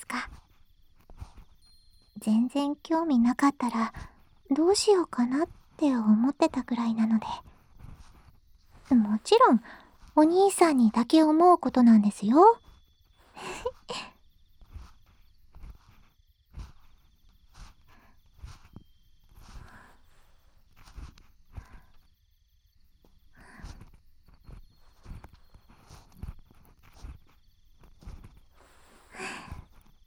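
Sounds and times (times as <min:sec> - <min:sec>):
speech: 0:02.2 - 0:07.5, 0:08.9 - 0:12.6, 0:13.4 - 0:14.1
ear pick cleaning an ear: 0:05.3 - 0:11.3, 0:12.4 - 0:22.1, 0:23.1 - 0:30.0.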